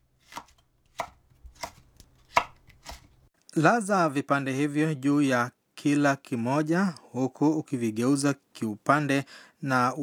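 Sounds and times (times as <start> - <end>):
knife chopping bell pepper into long strips: 0.2 - 3.2
speech: 3.6 - 10.0.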